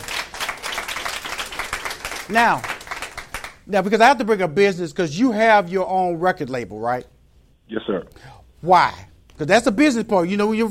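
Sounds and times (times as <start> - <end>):
round of applause: 0.0 - 3.6
speech: 2.3 - 2.7, 3.7 - 10.6.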